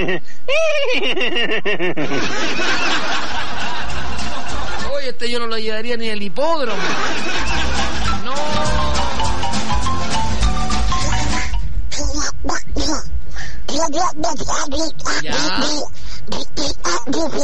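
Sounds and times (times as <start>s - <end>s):
speech: 0.0s - 2.9s, 5.1s - 7.6s, 13.8s - 17.4s
laughter: 0.0s - 5.0s, 6.6s - 9.4s
dense noisy sound: 2.0s - 17.4s
person imitating a cartoon duck's voice with raspy nasal quacks: 11.9s - 17.4s.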